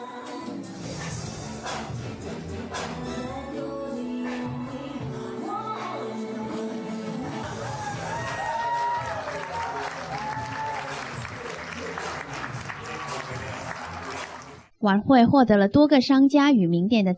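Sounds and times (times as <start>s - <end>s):
crowd applauding: 7.3s - 14.7s
speech: 14.8s - 17.1s.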